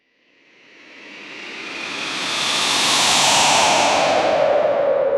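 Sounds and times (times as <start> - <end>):
something flying through air: 1.5 - 5.0.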